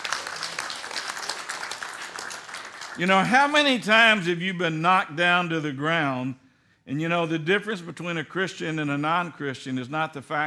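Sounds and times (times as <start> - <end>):
church congregation applauding in praise: 0.0 - 3.9
speech: 3.0 - 10.4.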